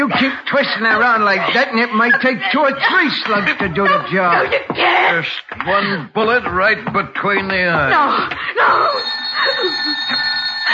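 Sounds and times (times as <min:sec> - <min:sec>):
laughter: 0:00.0 - 0:04.8
speech: 0:00.0 - 0:10.7
telephone ringing: 0:08.7 - 0:10.7.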